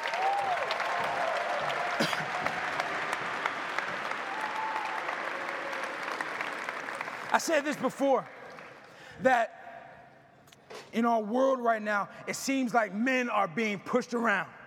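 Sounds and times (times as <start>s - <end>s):
audience clapping: 0.0s - 9.1s
speech: 7.4s - 8.4s, 9.2s - 9.6s, 11.0s - 14.6s.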